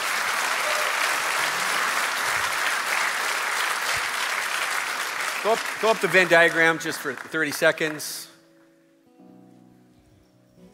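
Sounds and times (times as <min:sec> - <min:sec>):
audience clapping: 0:00.0 - 0:08.3
speech: 0:05.4 - 0:08.3.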